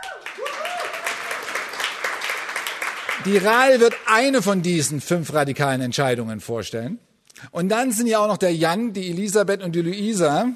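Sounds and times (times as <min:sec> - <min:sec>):
audience applause: 0:00.0 - 0:04.5
speech: 0:03.2 - 0:10.5.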